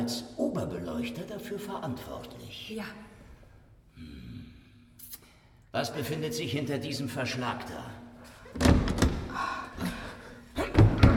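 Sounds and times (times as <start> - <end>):
speech: 0.0 - 0.3, 1.0 - 3.2, 5.7 - 8.0
stuck door being pushed against obstruction: 8.6 - 9.3, 10.6 - 11.1.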